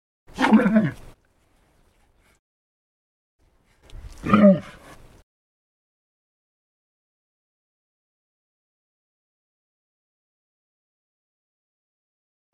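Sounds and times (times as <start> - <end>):
camels: 0.3 - 2.4, 3.6 - 5.2.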